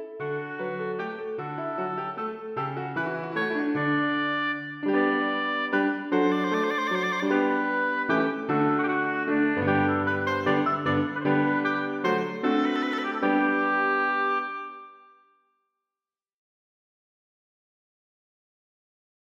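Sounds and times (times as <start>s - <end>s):
oboe and piano minuet: 0.0s - 15.2s.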